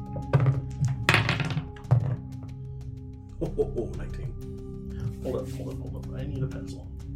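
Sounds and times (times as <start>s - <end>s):
dice rolling across a tabletop: 0.2s - 2.2s
speech: 3.4s - 4.5s, 5.2s - 7.0s.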